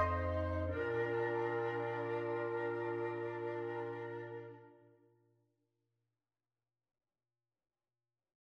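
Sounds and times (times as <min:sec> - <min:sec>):
bass clarinet: 0:00.0 - 0:04.7
flutes playing: 0:00.0 - 0:04.9.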